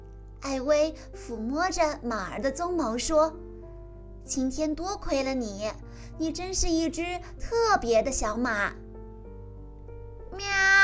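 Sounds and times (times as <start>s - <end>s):
speech: 0.4s - 3.4s, 4.2s - 8.8s
cat meowing: 10.4s - 10.8s.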